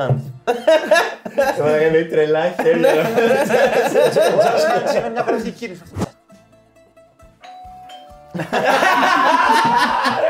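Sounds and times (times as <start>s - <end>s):
speech: 0.0s - 6.1s, 8.4s - 10.2s
noisy laughter: 0.5s - 5.6s, 8.4s - 10.2s
two-tone doorbell-style ding-dong chime: 7.4s - 8.4s.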